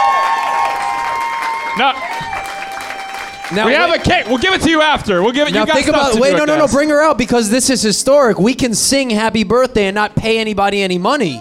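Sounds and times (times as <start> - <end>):
audience applause: 0.0 - 6.7
speech: 1.8 - 2.4, 3.5 - 11.3.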